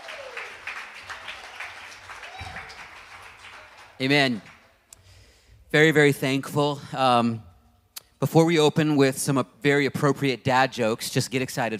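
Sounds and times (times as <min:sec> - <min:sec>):
cheers and whoops: 0:00.0 - 0:03.9
church crowd clapping: 0:00.0 - 0:05.0
speech: 0:04.0 - 0:04.5, 0:05.7 - 0:07.5, 0:08.2 - 0:11.7.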